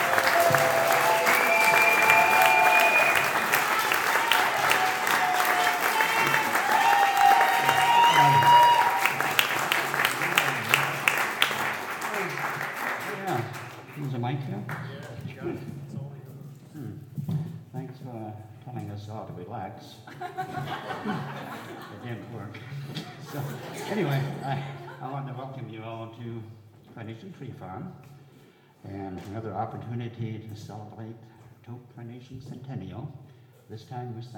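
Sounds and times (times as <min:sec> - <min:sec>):
audience applause: 0:00.0 - 0:15.2
laughter: 0:20.1 - 0:25.4
speech: 0:32.2 - 0:34.3.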